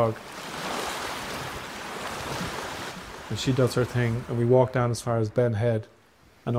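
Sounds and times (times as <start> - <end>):
speech: 0.0 - 0.3, 3.3 - 6.5
sea waves on the shore: 0.0 - 5.2, 6.0 - 6.5.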